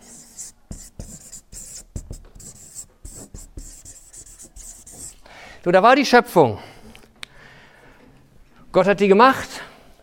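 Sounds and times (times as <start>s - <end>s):
marker squeaking on a flipchart writing a word: 0.0s - 5.2s
speech: 5.6s - 6.7s, 8.7s - 9.6s.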